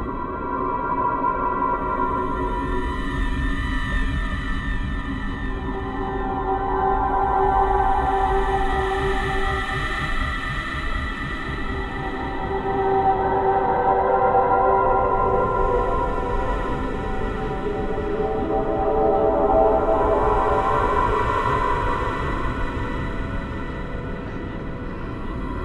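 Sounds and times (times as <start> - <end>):
dark ambient exploration music: 0.0 - 25.6.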